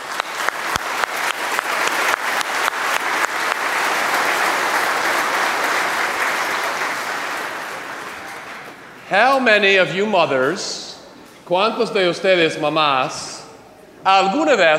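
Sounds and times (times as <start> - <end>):
audience applause for mothers at a Mother's Day gathering: 0.0 - 9.0
speech: 9.1 - 10.9, 11.5 - 13.3, 14.0 - 14.7.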